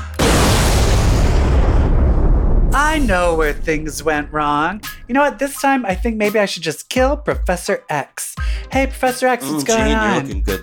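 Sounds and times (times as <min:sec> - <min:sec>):
nuclear bomb explosion: 0:00.0 - 0:05.4
speech: 0:02.9 - 0:10.6.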